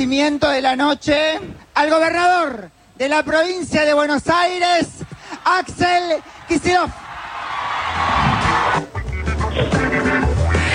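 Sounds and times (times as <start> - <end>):
speech: 0.0 - 7.0
crowd ovation with cheering and applause: 5.0 - 9.7.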